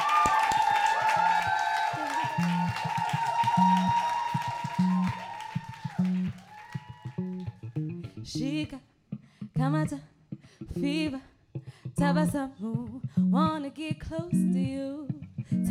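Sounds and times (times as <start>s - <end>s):
audience clapping and cheering with whoops: 0.0s - 7.8s
speech: 9.6s - 10.1s, 10.8s - 11.3s, 12.0s - 15.6s.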